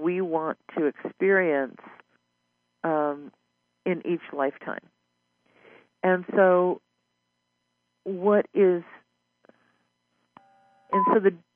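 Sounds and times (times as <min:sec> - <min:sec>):
speech: 0:00.4 - 0:02.0, 0:02.8 - 0:04.9, 0:06.0 - 0:06.8, 0:08.0 - 0:09.0, 0:10.9 - 0:11.5
telephone line tone: 0:10.4 - 0:11.4.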